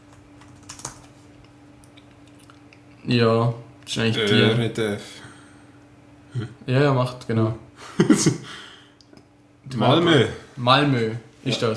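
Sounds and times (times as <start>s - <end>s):
low steady noise: 0.0s - 11.7s
faint computer keyboard typing: 0.1s - 1.1s
speech: 3.1s - 5.3s, 6.3s - 8.7s, 9.7s - 11.7s
laughter: 7.8s - 8.6s.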